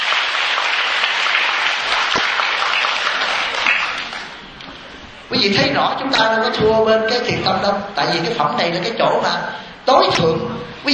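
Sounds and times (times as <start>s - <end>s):
crowd clapping: 0.0s - 4.6s
speech: 5.3s - 10.9s.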